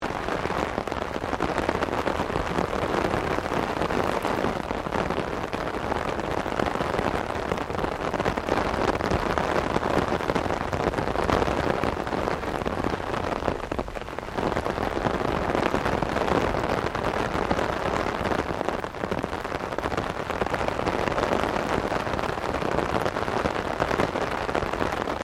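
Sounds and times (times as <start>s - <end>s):
medium rain on umbrella: 0.0s - 25.2s.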